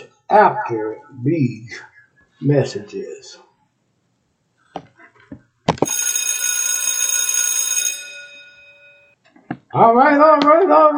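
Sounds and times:
speech: 0.3s - 3.4s, 9.7s - 10.9s
bell ringing: 5.8s - 9.2s.

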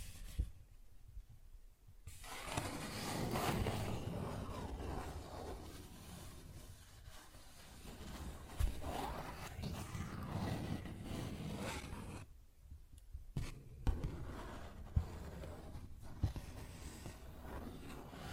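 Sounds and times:
paper bag scratching: 2.1s - 12.2s, 14.1s - 18.3s.

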